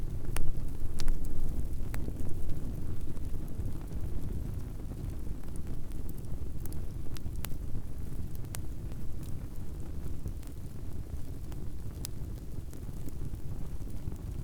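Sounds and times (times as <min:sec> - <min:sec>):
fire: 0:00.0 - 0:14.4.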